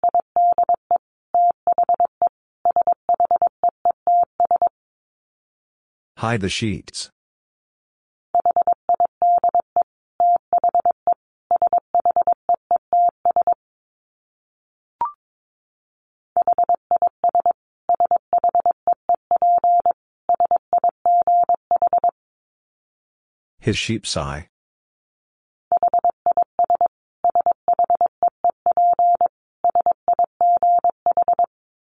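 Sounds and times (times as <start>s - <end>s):
Morse code tones at 22 words per minute: 0.0s - 4.7s, 8.4s - 13.6s, 16.4s - 22.1s, 25.7s - 31.5s
speech: 6.2s - 7.2s, 23.6s - 24.5s.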